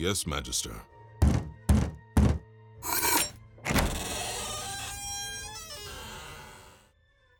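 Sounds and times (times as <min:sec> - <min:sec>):
speech: 0:00.0 - 0:01.0
heavy knocking on a door: 0:01.2 - 0:02.5
lingering creak: 0:03.0 - 0:06.9.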